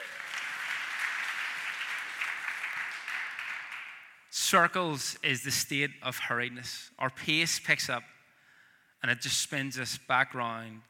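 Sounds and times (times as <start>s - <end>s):
round of applause: 0.0s - 4.2s
speech: 4.5s - 8.1s, 9.0s - 10.8s.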